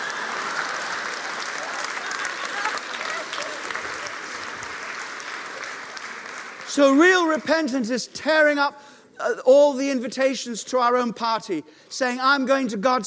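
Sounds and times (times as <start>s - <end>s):
audience applause: 0.0s - 7.6s
speech: 6.8s - 13.0s.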